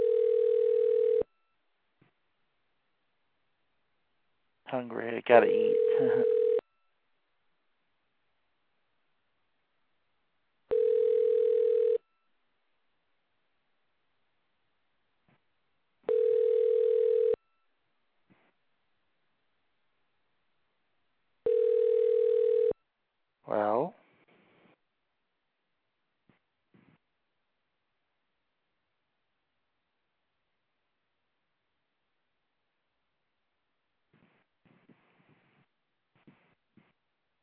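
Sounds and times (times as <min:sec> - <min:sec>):
telephone line tone: 0:00.0 - 0:01.3, 0:05.5 - 0:06.6, 0:10.7 - 0:12.1, 0:16.1 - 0:17.4, 0:21.5 - 0:22.8
speech: 0:04.7 - 0:06.4.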